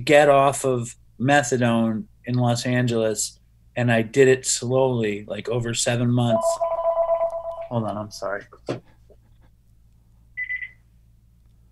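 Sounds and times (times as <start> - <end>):
speech: 0.0 - 6.7, 7.7 - 8.9
steady low hum: 5.9 - 8.0
landline telephone ringing electronic trill: 6.3 - 7.8.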